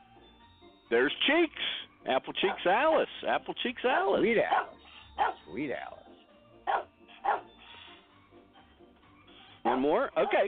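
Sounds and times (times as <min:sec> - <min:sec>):
speech: 0:00.9 - 0:06.0, 0:09.8 - 0:10.4
old dog barking: 0:02.4 - 0:03.1, 0:04.5 - 0:05.5, 0:06.7 - 0:07.5, 0:09.6 - 0:10.4.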